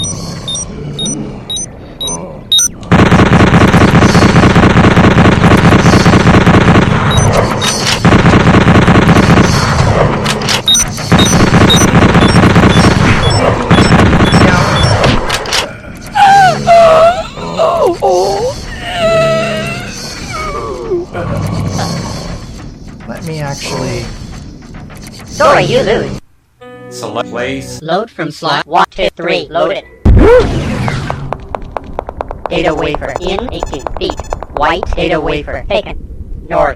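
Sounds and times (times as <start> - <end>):
quiet video game sounds: 0.0 - 36.7
automatic bolt gun firing in a video game: 2.9 - 7.2, 8.0 - 9.7, 11.1 - 14.9
speech: 25.6 - 26.2, 27.4 - 30.6, 32.5 - 36.7.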